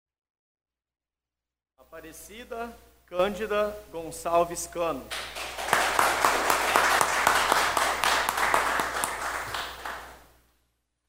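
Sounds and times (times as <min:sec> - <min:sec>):
speech: 0:01.9 - 0:05.4
applause: 0:05.1 - 0:10.3.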